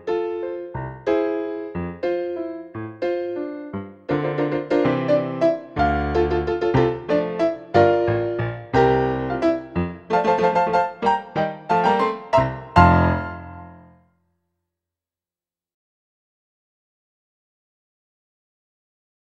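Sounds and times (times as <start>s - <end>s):
piano: 0.0s - 14.1s.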